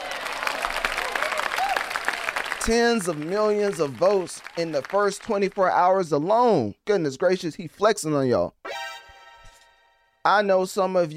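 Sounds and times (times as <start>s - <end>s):
audience applause: 0.0s - 5.4s
speech: 2.6s - 8.6s, 10.2s - 11.1s.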